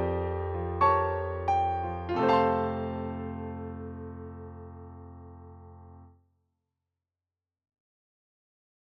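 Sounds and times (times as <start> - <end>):
piano accompaniment: 0.0 - 6.1.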